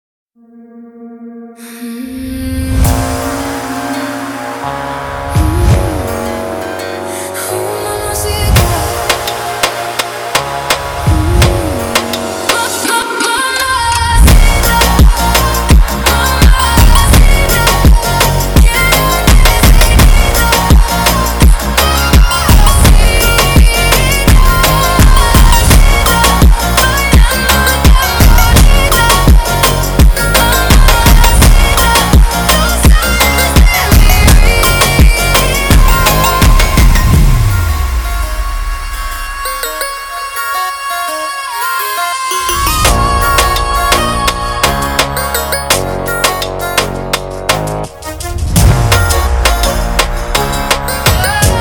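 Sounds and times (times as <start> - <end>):
funk music: 1.8 - 51.5.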